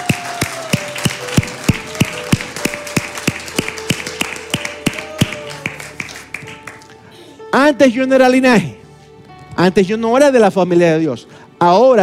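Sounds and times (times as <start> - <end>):
crowd clapping in rhythm: 0.0 - 7.0
soft sustained musical tones: 0.5 - 12.0
speech: 7.7 - 8.8, 9.6 - 12.0.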